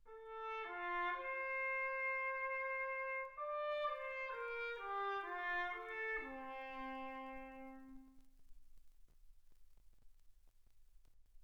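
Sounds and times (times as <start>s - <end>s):
trumpet: 0.0s - 8.5s.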